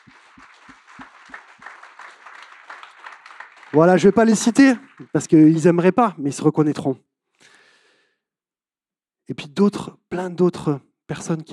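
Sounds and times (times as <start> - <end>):
crowd applauding: 0.0 - 6.1
speech: 3.7 - 7.1, 9.3 - 11.5.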